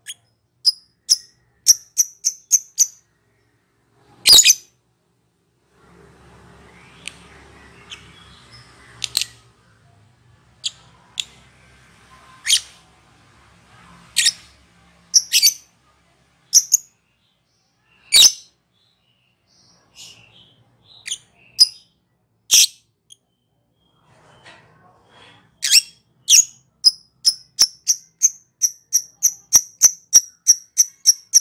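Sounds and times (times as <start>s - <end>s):
lovebird chirps: 0.0s - 3.1s, 4.2s - 4.7s, 6.7s - 9.4s, 14.2s - 14.5s, 15.1s - 15.7s, 16.5s - 17.0s, 18.0s - 19.0s, 19.6s - 24.0s, 25.6s - 31.3s
faint low hum: 0.0s - 25.5s.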